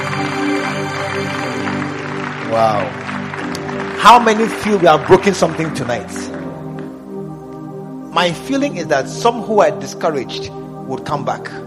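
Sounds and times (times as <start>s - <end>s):
audience clapping: 0.0s - 7.0s
speech: 2.5s - 3.1s, 4.0s - 6.4s, 8.2s - 11.6s.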